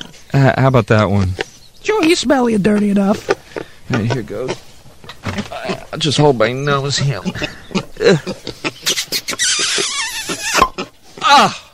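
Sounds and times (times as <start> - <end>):
speech: 0.4 - 4.6, 5.4 - 8.6, 11.3 - 11.6
pigs squealing and grunting: 2.8 - 11.7.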